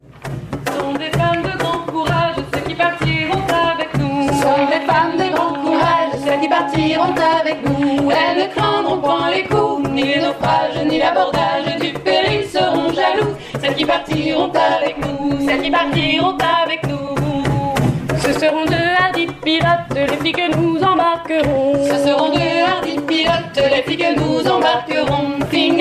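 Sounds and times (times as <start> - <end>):
singing: 0.7 - 25.7.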